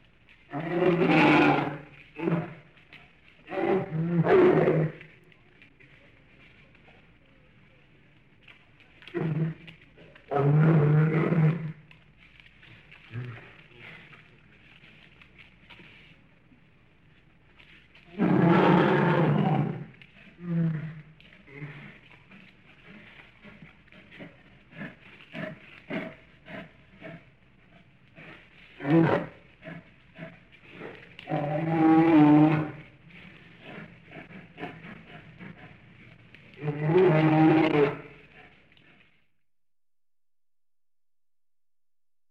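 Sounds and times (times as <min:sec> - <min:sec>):
bear growling and grunting: 0:00.5 - 0:02.8, 0:03.4 - 0:05.2, 0:09.0 - 0:12.0, 0:17.9 - 0:39.1.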